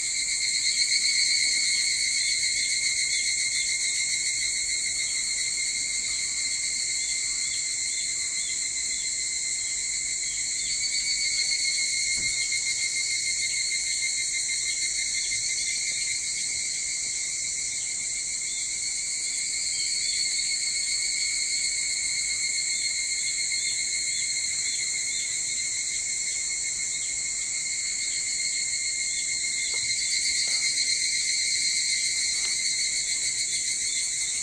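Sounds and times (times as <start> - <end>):
evening cicadas chorus: 0.0 - 34.4.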